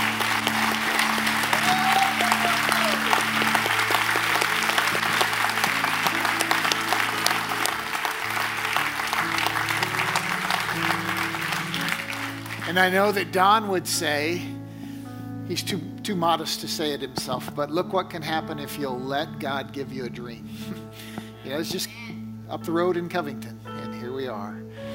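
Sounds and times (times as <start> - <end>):
audience applause: 0.0 - 13.0
low sustained musical tones: 0.0 - 24.9
speech: 12.8 - 14.6, 15.5 - 23.5, 24.2 - 24.6.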